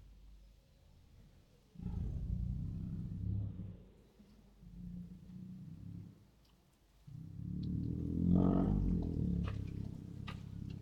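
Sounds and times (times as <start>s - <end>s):
two tigers growling: 1.8s - 6.4s, 7.1s - 10.8s.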